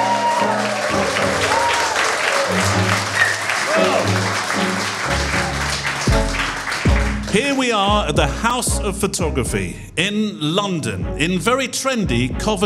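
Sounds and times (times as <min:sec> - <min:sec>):
live audience applause: 0:00.0 - 0:08.0
scattered cheers and voices: 0:00.0 - 0:08.0
speech: 0:07.3 - 0:12.6.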